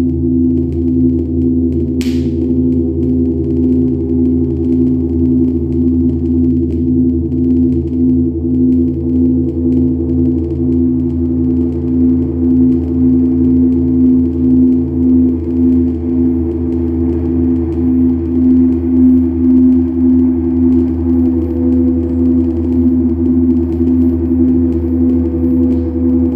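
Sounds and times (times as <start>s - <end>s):
noise upstairs: 0.2s - 26.3s.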